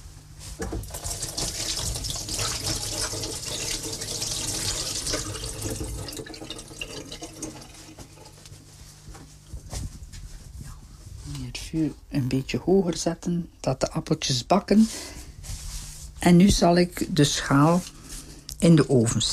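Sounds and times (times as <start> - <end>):
running tap water while washing hands: 0.7 - 8.4
speech: 11.7 - 15.2, 16.2 - 17.9, 18.6 - 19.3.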